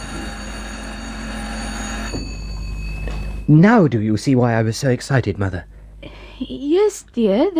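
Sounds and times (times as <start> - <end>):
electric bell ringing: 0.0 - 5.6
speech: 3.5 - 7.5.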